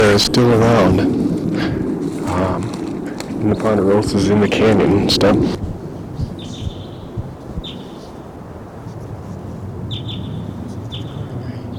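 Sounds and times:
birds chirping in a canyon: 0.0s - 8.4s, 9.9s - 11.7s
speech: 0.2s - 2.8s, 3.4s - 5.7s.

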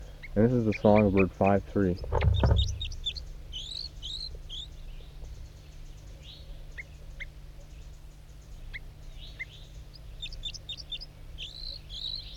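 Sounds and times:
goldfinch song: 0.0s - 12.3s.

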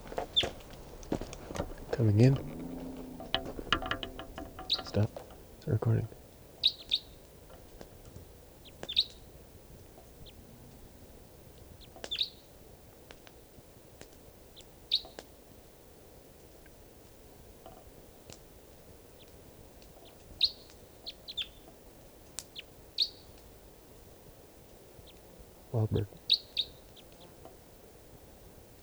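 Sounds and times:
low steady hiss: 0.0s - 6.3s
wild birds chirping: 0.0s - 9.3s, 25.0s - 27.4s
speech: 2.0s - 2.5s, 5.7s - 6.2s.

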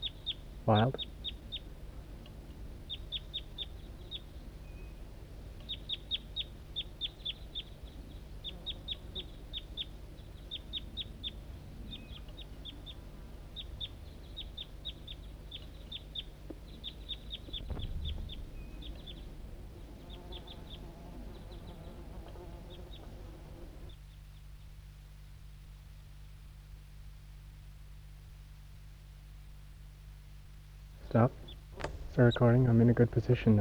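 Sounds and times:
decoy birds calling in response: 0.0s - 24.0s, 31.0s - 33.6s
low steady hum: 0.0s - 33.6s
speech: 0.7s - 1.1s, 32.2s - 33.6s.

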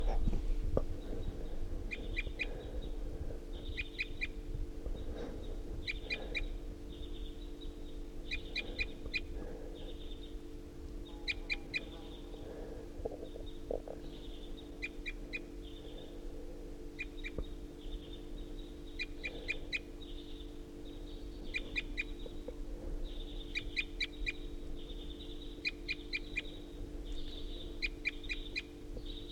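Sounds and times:
wild bird calling from top of a tall ponderosa pine: 1.0s - 29.3s.

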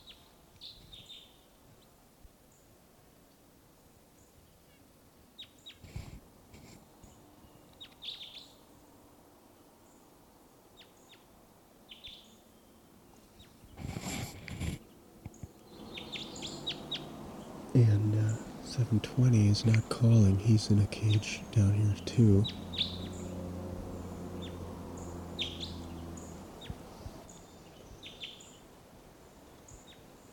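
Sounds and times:
rustling or wind noise: 5.8s - 7.2s, 13.1s - 21.1s, 22.2s - 30.3s
wild bird chirping: 7.0s - 8.6s, 11.9s - 28.8s
speech: 18.8s - 22.6s.

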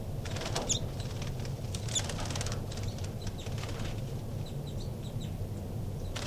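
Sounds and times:
baby birds fluttering wingbeats: 0.2s - 4.8s, 6.0s - 6.2s.

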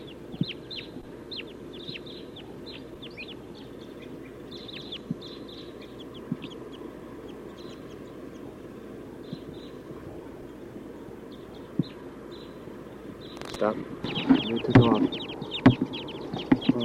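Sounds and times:
flock of crossbills calling: 0.0s - 16.8s
speech: 13.6s - 15.3s
soft knocks: 14.0s - 16.8s.

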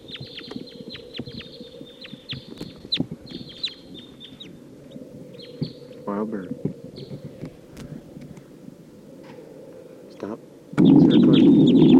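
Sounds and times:
flock of wild birds taking off: 0.0s - 11.9s
speech: 6.1s - 6.7s.

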